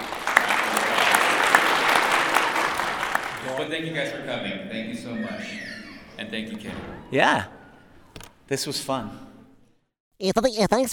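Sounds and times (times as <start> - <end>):
crowd applause: 0.0 - 4.3
speech: 3.7 - 7.5, 8.5 - 9.3, 10.2 - 10.9.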